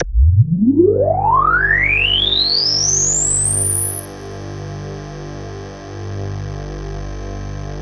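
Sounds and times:
Korg DW8000 vintage keyboard playing G: 0.0s - 7.8s.

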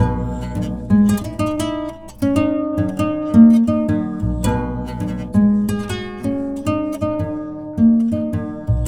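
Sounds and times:
kora playing: 0.0s - 8.8s.

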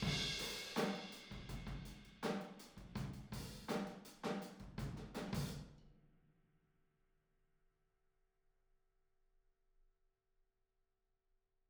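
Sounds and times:
boogaloo drum outro in stereo room: 0.0s - 5.6s.

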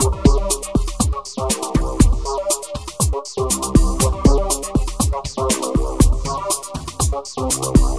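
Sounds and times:
processed electro percussion: 0.0s - 7.9s.

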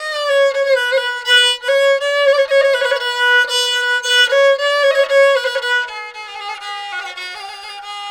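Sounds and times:
Chinese stringed instruments playing: 0.0s - 8.0s.

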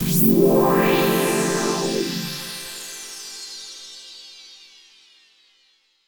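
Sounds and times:
epic synth pad for UK house and electro: 0.0s - 3.0s.

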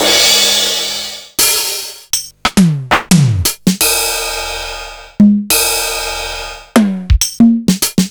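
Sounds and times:
sliced LinnDrum drum machine beat: 0.0s - 8.0s.

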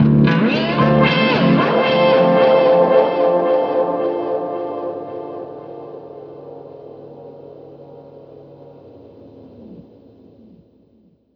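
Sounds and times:
guitars: 0.0s - 9.0s.

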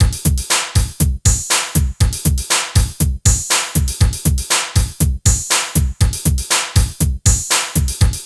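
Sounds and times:
techno music: 0.0s - 8.2s.

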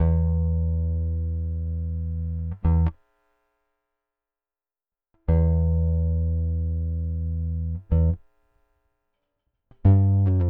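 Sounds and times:
rock bass guitar: 0.0s - 3.0s, 5.3s - 8.2s, 9.8s - 10.4s.

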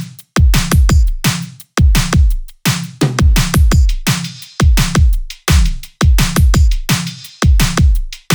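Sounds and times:
music loop: 0.4s - 8.3s.

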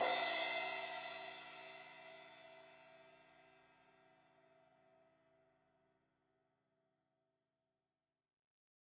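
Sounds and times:
16-inch crash cymbal hit on the edge: 0.0s - 1.4s.

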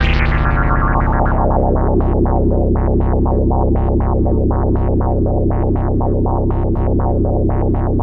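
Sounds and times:
twisted analog special effect: 0.0s - 8.0s.

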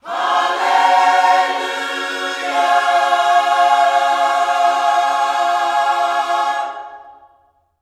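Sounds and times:
gospel vocals singing hallelu: 0.0s - 7.6s.

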